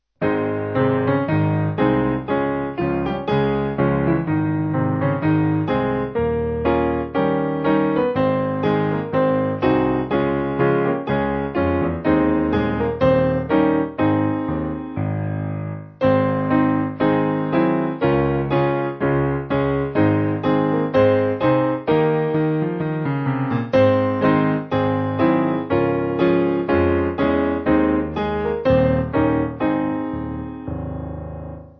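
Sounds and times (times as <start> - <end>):
church music piano backing: 0.2 - 31.7.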